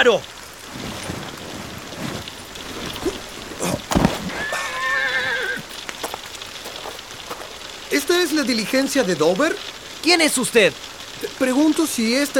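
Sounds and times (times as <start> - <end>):
speech: 0.0 - 0.9, 8.1 - 12.3
steady hiss: 0.0 - 12.3
horse whinnying: 2.9 - 5.7
sharp knocks: 3.0 - 4.4.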